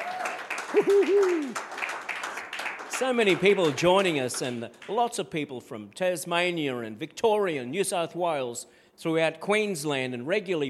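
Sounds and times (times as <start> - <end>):
audience applauding: 0.0 - 5.0
laughter: 0.6 - 1.6
speech: 0.8 - 1.6, 3.0 - 10.6.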